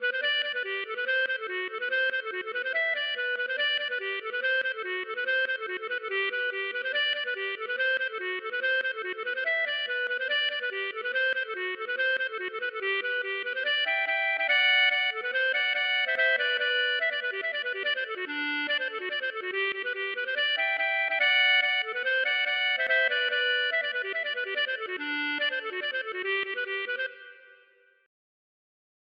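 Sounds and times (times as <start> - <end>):
polka music: 0.0 - 27.8.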